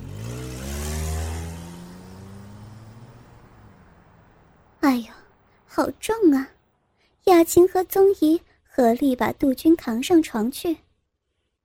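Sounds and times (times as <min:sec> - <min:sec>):
car engine revving: 0:00.0 - 0:04.8
road noise: 0:00.0 - 0:11.4
speech: 0:04.9 - 0:06.6, 0:07.2 - 0:10.8.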